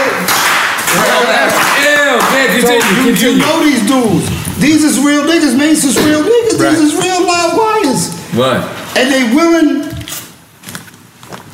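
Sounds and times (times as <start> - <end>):
slow clap: 0.0 - 3.5
speech: 2.4 - 9.9.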